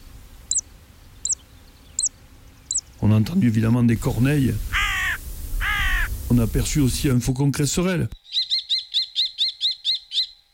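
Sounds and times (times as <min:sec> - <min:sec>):
zitting cisticola calling: 0:00.0 - 0:03.0, 0:04.7 - 0:06.2, 0:08.2 - 0:10.5
speech: 0:03.1 - 0:04.7, 0:06.3 - 0:08.2.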